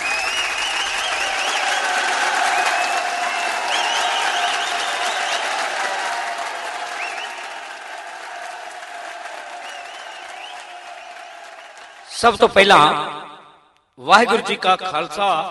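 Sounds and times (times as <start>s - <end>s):
audience applause welcoming a singer: 0.0s - 12.2s
speech: 12.2s - 13.2s, 14.0s - 15.4s.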